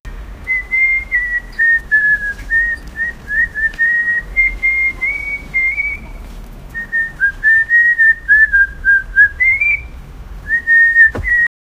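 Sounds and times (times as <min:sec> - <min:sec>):
person whistling a tune on the street: 0:00.5 - 0:06.1, 0:06.8 - 0:09.9, 0:10.5 - 0:11.5
footsteps walking down the street: 0:01.2 - 0:07.6, 0:11.1 - 0:11.4.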